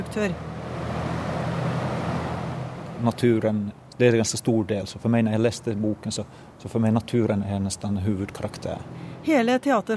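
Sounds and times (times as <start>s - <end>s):
large fans blowing artificial wind: 0.0s - 3.4s
speech: 0.2s - 0.5s, 3.0s - 9.9s.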